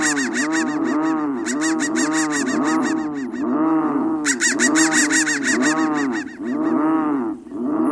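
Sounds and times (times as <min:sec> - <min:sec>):
crow cawing: 0:00.0 - 0:07.8.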